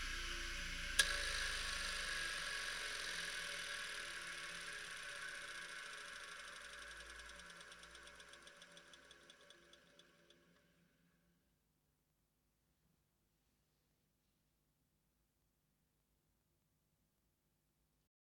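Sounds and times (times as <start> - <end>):
bench grinder: 0.2 - 9.8.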